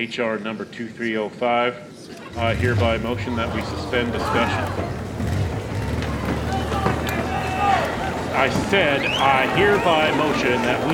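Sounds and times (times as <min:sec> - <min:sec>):
speech: 0:00.0 - 0:05.0, 0:08.4 - 0:10.9
overlapping excited voices and shouts: 0:02.2 - 0:10.9
many footsteps of crowd running out: 0:03.0 - 0:10.9.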